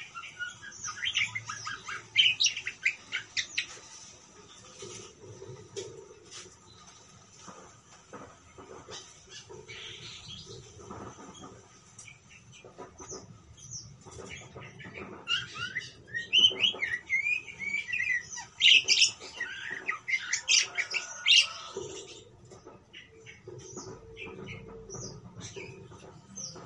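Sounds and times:
parakeet warbling chatter: 0:00.0 - 0:03.7, 0:14.0 - 0:26.5.

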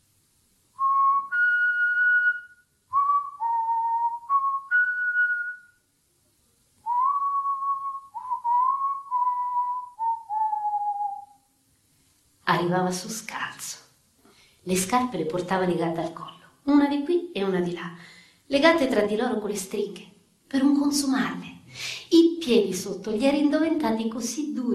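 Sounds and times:
man whistling a simple tune: 0:00.8 - 0:05.8, 0:06.8 - 0:11.4
speech: 0:12.5 - 0:13.8, 0:14.6 - 0:24.7.

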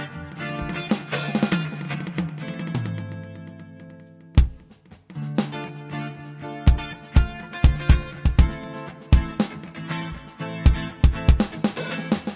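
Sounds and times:
music with heavy reverb effect: 0:00.5 - 0:12.3.

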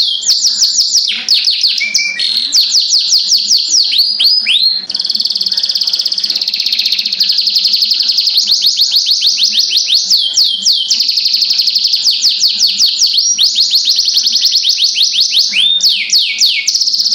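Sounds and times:
Oriental magpie-robin song: 0:00.0 - 0:17.1.

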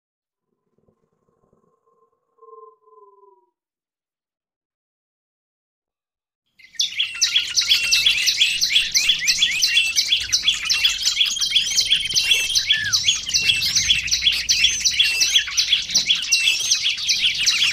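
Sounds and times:
lovebirds chattering with high clipped chirps: 0:06.7 - 0:17.7.

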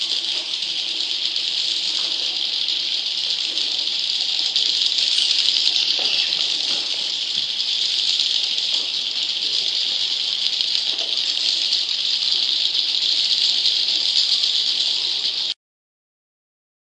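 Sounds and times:
leafbird song: 0:00.0 - 0:15.5.

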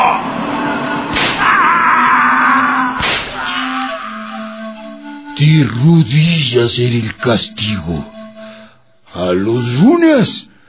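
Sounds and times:
low sustained hum: 0:00.0 - 0:09.6
whip lashes of a flogging punishment: 0:01.1 - 0:01.4, 0:03.0 - 0:03.4
speech: 0:05.4 - 0:08.1, 0:09.2 - 0:10.5.

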